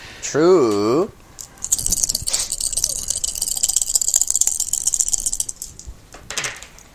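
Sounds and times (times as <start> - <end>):
dice being rolled: 1.4 - 6.7.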